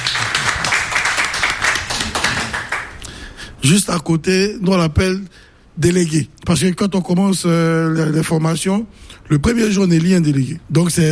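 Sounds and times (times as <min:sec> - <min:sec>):
crowd applauding: 0:00.0 - 0:03.0
speech: 0:03.6 - 0:11.1.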